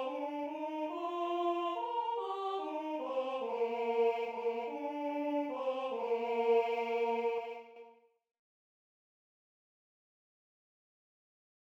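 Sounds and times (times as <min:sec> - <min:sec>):
first tenor voice singing: 0:00.0 - 0:07.8.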